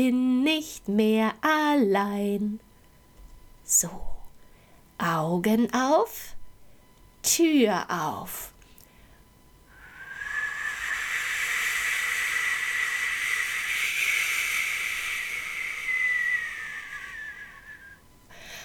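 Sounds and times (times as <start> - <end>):
speech: 0.0 - 2.6, 3.7 - 4.1, 5.0 - 6.4, 7.2 - 8.5
cold wind blowing: 9.8 - 17.8.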